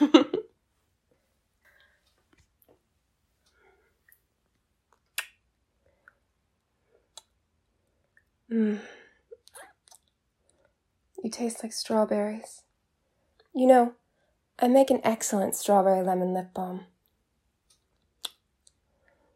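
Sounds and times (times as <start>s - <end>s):
kiss lip smacks and clicks: 5.0s - 5.4s, 7.1s - 7.3s, 18.2s - 18.8s
speech: 11.3s - 12.6s, 13.6s - 14.0s, 14.6s - 16.9s.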